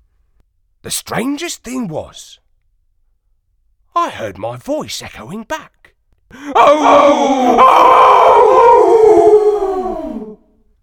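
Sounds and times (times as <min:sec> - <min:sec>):
speech: 0:00.8 - 0:02.4, 0:04.0 - 0:08.8
dog howling: 0:06.5 - 0:10.5.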